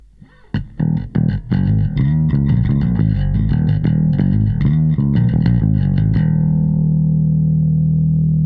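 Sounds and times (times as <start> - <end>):
bass: 0.0 - 8.4.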